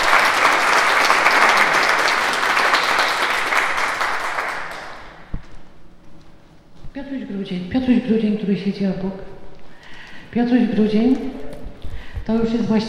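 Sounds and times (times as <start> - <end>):
audience applause: 0.0 - 5.4
speech: 7.5 - 9.3, 10.3 - 11.4, 12.3 - 12.8.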